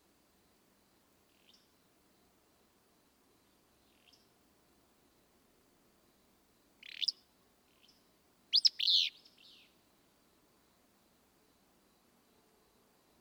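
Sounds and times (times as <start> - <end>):
Willow Flycatcher calling: 6.8 - 7.2, 7.8 - 9.8.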